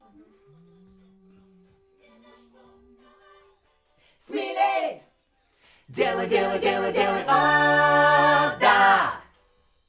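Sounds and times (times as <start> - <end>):
backing vocals on AKG microphone: 4.2 - 5.0, 5.9 - 9.3.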